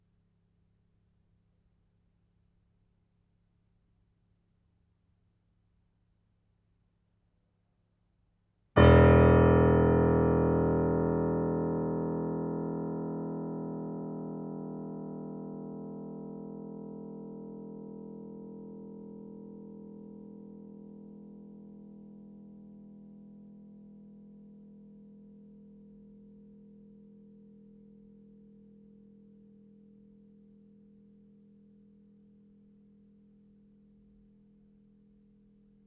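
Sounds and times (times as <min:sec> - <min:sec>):
grand piano multiphonics: 0:08.8 - 0:15.7.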